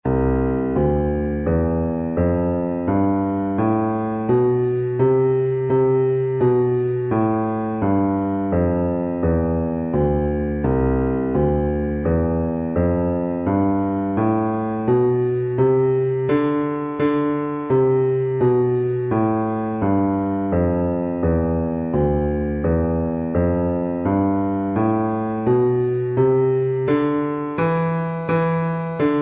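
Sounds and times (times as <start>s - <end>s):
musical scales and modes: 0.0s - 29.2s.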